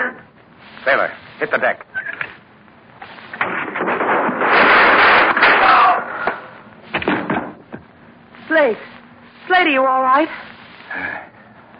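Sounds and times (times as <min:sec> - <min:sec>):
speech: 0:00.8 - 0:01.9, 0:08.6 - 0:08.9, 0:09.6 - 0:11.1
gunshots: 0:03.4 - 0:06.5.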